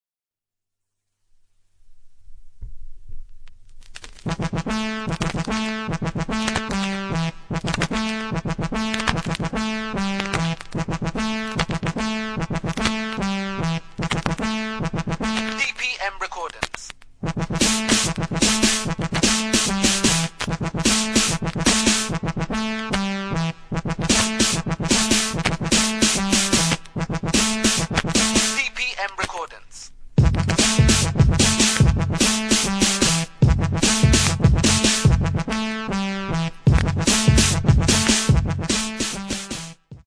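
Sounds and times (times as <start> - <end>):
instrumental music: 3.8 - 15.9, 17.2 - 28.7, 30.2 - 40.0.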